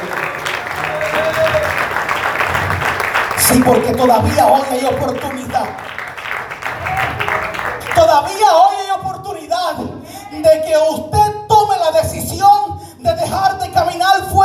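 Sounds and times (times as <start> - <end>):
audience applause: 0.0 - 8.4
speech: 3.5 - 5.8, 8.2 - 8.8, 10.4 - 14.4.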